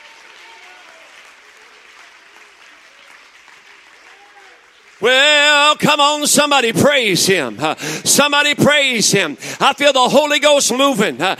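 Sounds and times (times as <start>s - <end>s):
audience clapping: 0.0s - 8.8s
speech: 5.0s - 11.3s.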